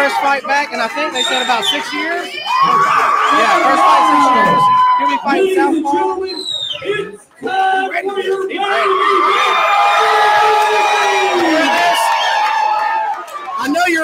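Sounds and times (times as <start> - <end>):
speech: 0.1 - 11.0
crowd cheering at a live fight event: 2.4 - 5.5, 8.6 - 13.8.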